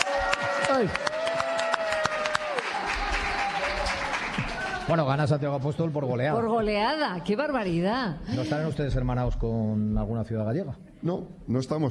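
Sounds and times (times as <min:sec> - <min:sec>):
audience applause: 0:00.0 - 0:05.3
speech: 0:00.8 - 0:01.1, 0:04.9 - 0:11.9.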